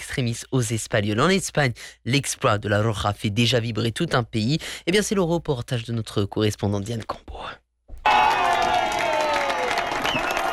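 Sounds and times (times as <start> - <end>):
speech: 0.2 - 8.3
cheering on a café terrace in central Madrid: 8.0 - 10.5
applause on a café terrace in central Madrid: 8.1 - 10.5.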